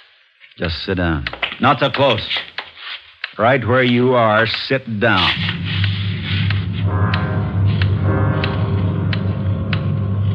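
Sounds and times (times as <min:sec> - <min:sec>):
speech: 0:00.6 - 0:02.5, 0:03.4 - 0:05.6
loud ticking clock: 0:03.8 - 0:10.3.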